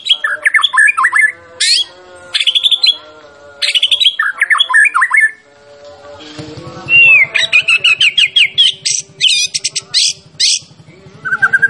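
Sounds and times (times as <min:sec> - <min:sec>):
white-rumped shama song: 0:00.0 - 0:11.6.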